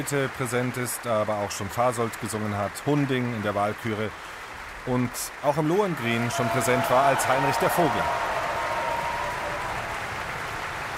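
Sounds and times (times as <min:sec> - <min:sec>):
speech: 0:00.0 - 0:08.3
opera audience applause: 0:03.8 - 0:10.9.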